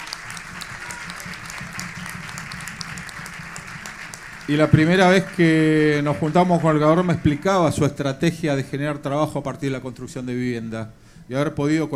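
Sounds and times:
audience applause: 0.0s - 7.7s
speech: 4.5s - 11.9s.

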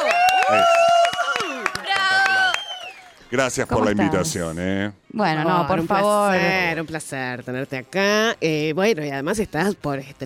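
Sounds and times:
audience clapping: 0.0s - 3.6s
people cheering and calling out: 0.0s - 4.5s
speech: 3.3s - 10.2s.

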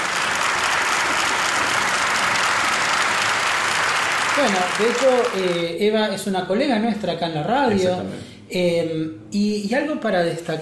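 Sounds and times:
crowd applauding: 0.0s - 5.8s
speech: 4.4s - 10.6s.

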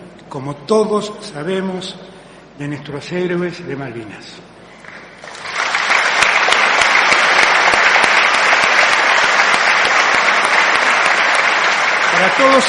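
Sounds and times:
speech: 0.3s - 4.5s, 12.2s - 12.6s
Legislative Assembly applause: 4.8s - 12.6s.

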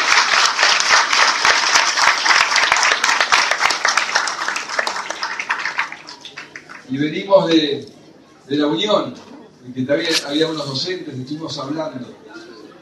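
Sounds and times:
audience applause: 0.0s - 6.9s
speech: 6.9s - 12.4s.

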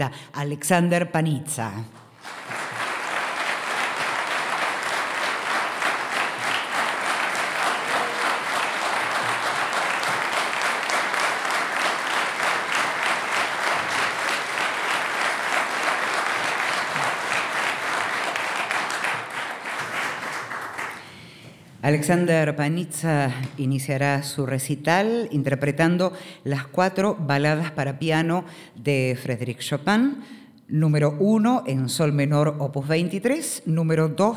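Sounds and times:
speech: 0.0s - 2.4s, 21.9s - 34.3s
audience applause in concert hall: 2.1s - 21.0s.

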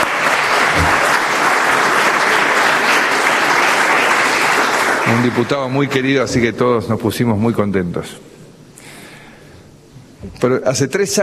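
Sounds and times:
audience applause: 0.0s - 5.8s
speech: 5.2s - 8.3s, 10.2s - 11.2s.

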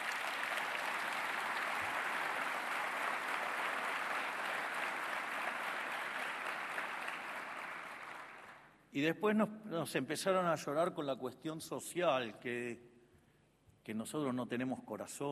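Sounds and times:
crowd applause: 0.0s - 8.7s
speech: 8.9s - 12.9s, 13.8s - 15.3s.

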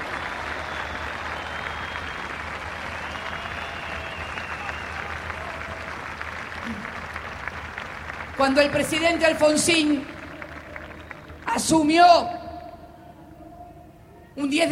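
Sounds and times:
audience applauding: 0.0s - 11.8s
speech: 8.4s - 10.1s, 11.7s - 12.4s, 14.4s - 14.7s.

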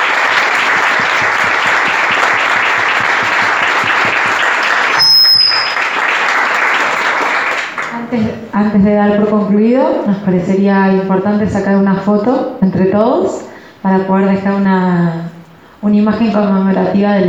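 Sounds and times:
audience applause: 0.0s - 8.0s
speech: 8.1s - 17.2s.

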